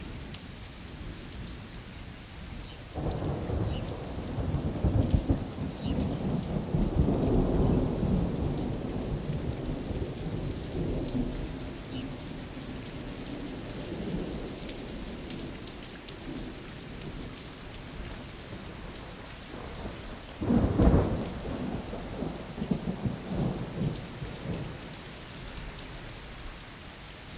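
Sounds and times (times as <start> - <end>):
distant thunder: 2.9 - 15.6, 19.5 - 24.8.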